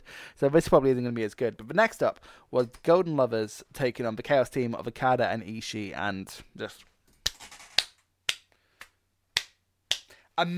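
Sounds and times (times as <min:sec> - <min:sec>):
speech: 0:00.4 - 0:07.5, 0:10.4 - 0:10.5
sharp isolated hand claps: 0:07.2 - 0:10.2.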